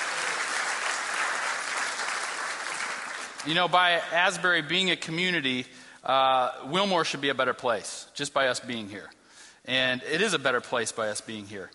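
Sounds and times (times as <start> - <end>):
crowd applause: 0.0 - 3.5
speech: 3.4 - 11.7.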